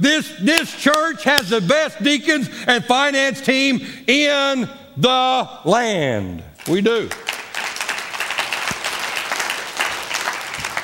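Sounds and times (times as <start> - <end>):
speech: 0.0 - 7.2
audience applause: 6.6 - 10.8.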